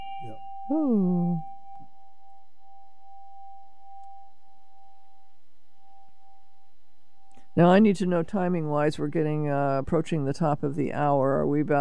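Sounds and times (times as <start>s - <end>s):
Tibetan bell ringing: 0.0s - 0.6s
speech: 0.7s - 1.5s, 7.6s - 11.7s.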